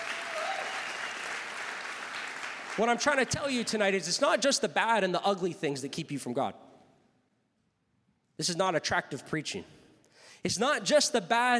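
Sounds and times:
congregation applause at a church sermon: 0.0s - 4.4s
speech: 2.8s - 6.6s, 8.4s - 9.8s, 10.4s - 11.5s.

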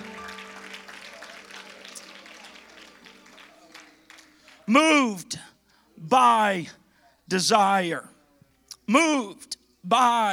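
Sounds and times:
audience applause: 0.0s - 4.7s
faint murmur of voices: 0.0s - 8.9s
speech: 4.7s - 5.5s, 6.1s - 8.1s, 8.9s - 10.3s.

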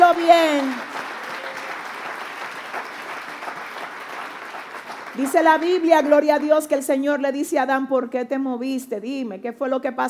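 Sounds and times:
audience applause: 0.0s - 6.6s
speech: 5.2s - 10.0s.

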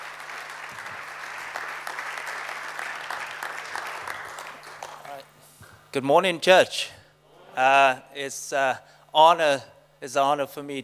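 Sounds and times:
audience applause: 0.0s - 5.2s
speech: 6.0s - 7.0s, 7.6s - 10.8s.

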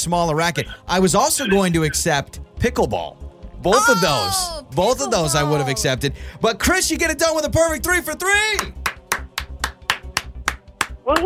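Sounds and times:
speech: 0.0s - 8.9s
laughter: 3.7s - 6.0s
slow clap: 8.6s - 11.2s.

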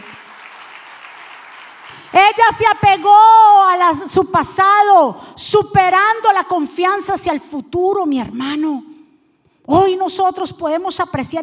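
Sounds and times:
crowd applause: 0.0s - 2.1s
speech: 2.1s - 8.9s, 9.7s - 11.4s.

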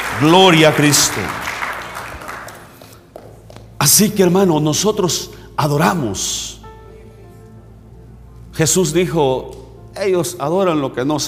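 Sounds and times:
audience applause: 0.0s - 3.2s
speech: 0.2s - 1.5s, 3.8s - 6.6s, 8.6s - 11.2s.

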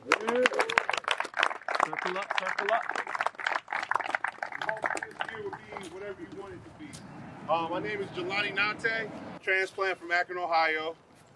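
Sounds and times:
audience clapping: 0.0s - 6.4s
speech: 2.1s - 3.2s, 5.4s - 11.0s.

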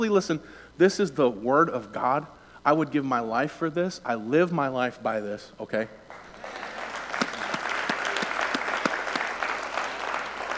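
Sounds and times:
speech: 0.0s - 6.6s
crowd clapping: 6.1s - 10.5s.

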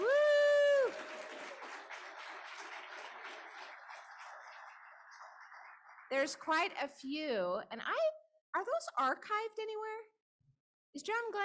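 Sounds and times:
lecture-hall audience applause: 0.0s - 6.6s
speech: 6.1s - 10.1s, 10.9s - 11.4s.

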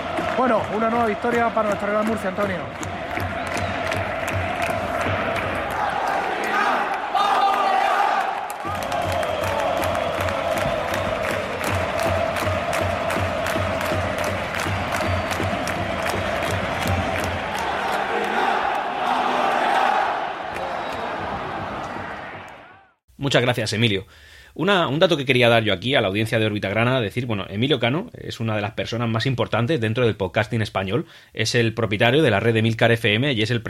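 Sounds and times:
stadium crowd shouting for final whistle: 0.0s - 23.0s
speech: 0.4s - 3.1s, 23.2s - 33.6s.

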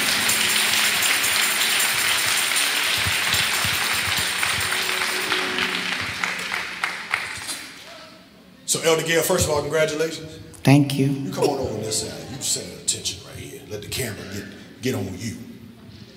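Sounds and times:
audience clapping: 0.0s - 8.0s
speech: 8.8s - 15.5s.

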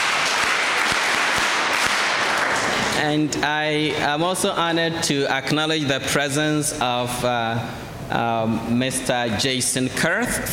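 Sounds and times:
audience clapping: 0.0s - 3.0s
speech: 3.0s - 10.5s.

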